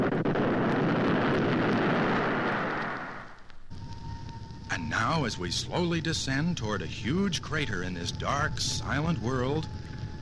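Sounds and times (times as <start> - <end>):
retro rocket firing during a moon landing: 0.0 - 3.9
speech: 5.0 - 10.2.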